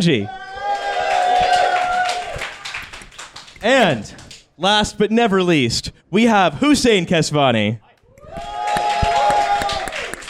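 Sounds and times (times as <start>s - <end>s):
speech: 0.0s - 0.4s, 3.6s - 7.8s
audience applause: 0.8s - 3.6s, 8.4s - 10.2s.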